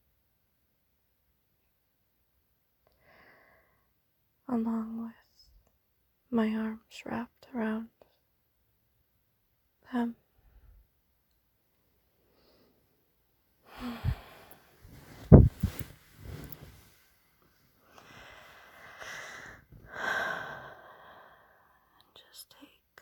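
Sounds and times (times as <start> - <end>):
speech: 4.5 - 5.2, 6.3 - 8.0, 9.9 - 10.2, 13.8 - 14.2
deep breaths through the nose: 13.7 - 17.0, 17.9 - 21.7.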